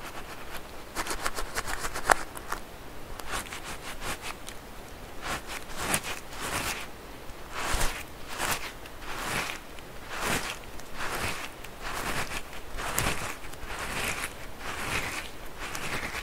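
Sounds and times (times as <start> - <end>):
faint hiss: 0.0 - 16.2
squishy stress balls squeezed crinkling and squelching: 5.2 - 16.2.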